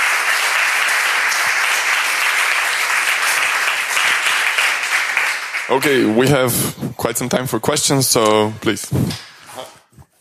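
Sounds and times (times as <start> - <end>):
audience applause: 0.0 - 6.4
speech: 5.7 - 9.3.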